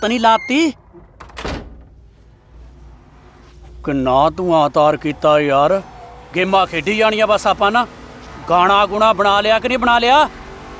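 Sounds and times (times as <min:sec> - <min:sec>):
speech: 0:00.0 - 0:00.8, 0:03.8 - 0:10.4
door opening thunk: 0:00.9 - 0:02.0.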